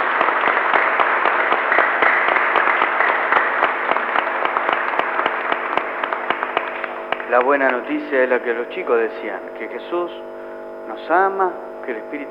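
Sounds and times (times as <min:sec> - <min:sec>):
loud applause for the children: 0:00.0 - 0:08.4
speech: 0:07.3 - 0:12.2.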